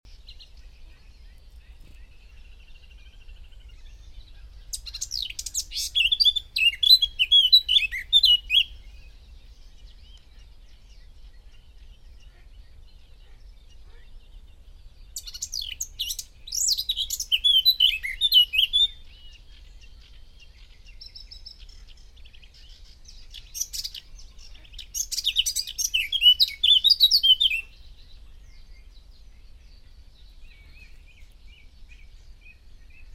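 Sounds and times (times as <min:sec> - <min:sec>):
Eurasian blackcap singing fluty whistles: 0:04.7 - 0:08.8, 0:15.2 - 0:19.4, 0:24.8 - 0:27.8.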